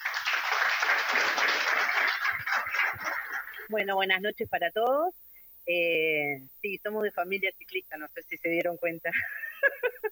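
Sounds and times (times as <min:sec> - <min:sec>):
applause: 0:00.0 - 0:03.7
speech: 0:03.7 - 0:09.8.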